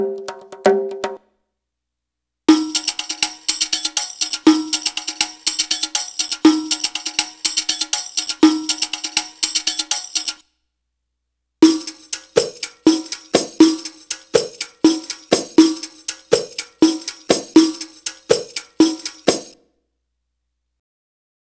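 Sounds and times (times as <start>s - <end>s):
Arabic rhythm percussion: 0.0s - 1.2s, 2.5s - 10.4s, 11.6s - 19.6s.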